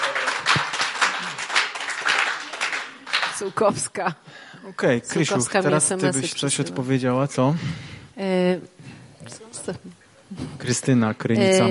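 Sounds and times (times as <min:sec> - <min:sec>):
applause: 0:00.0 - 0:03.6
speech: 0:03.4 - 0:08.7, 0:10.7 - 0:11.6.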